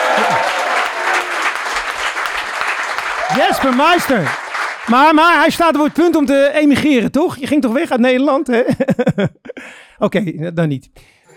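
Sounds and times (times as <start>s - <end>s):
audience applause: 0.0s - 6.3s
speech: 3.3s - 9.4s, 10.0s - 11.2s.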